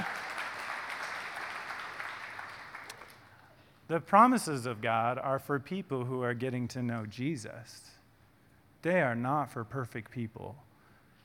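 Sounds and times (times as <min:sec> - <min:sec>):
audience applause: 0:00.0 - 0:03.3
speech: 0:03.9 - 0:08.0, 0:08.8 - 0:10.7.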